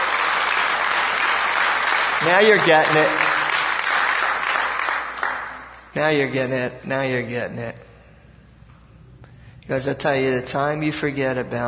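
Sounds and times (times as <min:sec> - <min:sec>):
audience clapping: 0:00.0 - 0:05.9
speech: 0:02.2 - 0:03.2, 0:06.0 - 0:07.9, 0:09.7 - 0:11.6.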